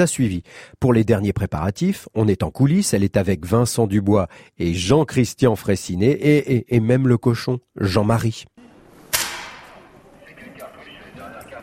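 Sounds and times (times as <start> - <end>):
speech: 0.0 - 8.7
stage rifle shot during sound test: 9.1 - 9.8.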